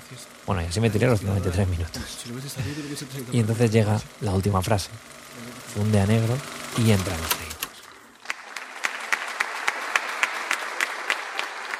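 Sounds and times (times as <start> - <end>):
speech: 0.1 - 7.4
audience applause: 7.9 - 11.7.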